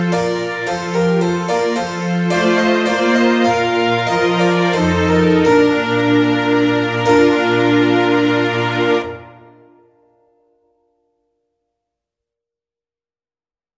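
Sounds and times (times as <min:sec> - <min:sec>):
trumpet tune: 0:00.0 - 0:09.9.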